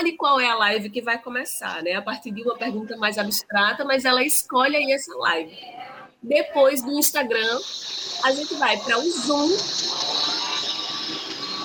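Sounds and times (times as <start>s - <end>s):
speech: 0.0s - 10.3s
power drill running: 7.4s - 11.6s.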